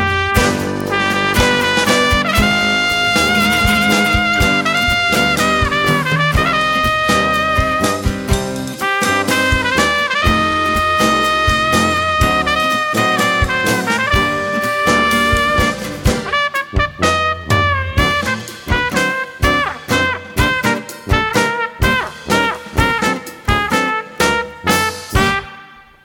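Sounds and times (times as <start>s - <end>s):
dixieland tango music: 0.0s - 26.0s.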